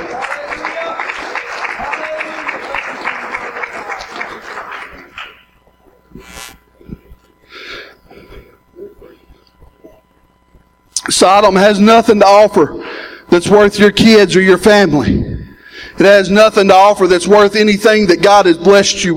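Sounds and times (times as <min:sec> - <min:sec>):
crowd clapping: 0:00.0 - 0:05.6
scattered breaths and murmurs: 0:06.7 - 0:10.6, 0:12.8 - 0:13.4, 0:15.0 - 0:16.0
speech: 0:11.2 - 0:15.2, 0:16.0 - 0:19.1.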